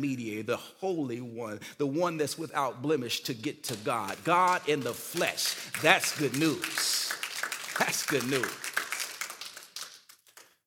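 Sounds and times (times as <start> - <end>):
speech: 0.0 - 7.1, 7.8 - 8.7
scattered audience clapping: 3.7 - 10.6.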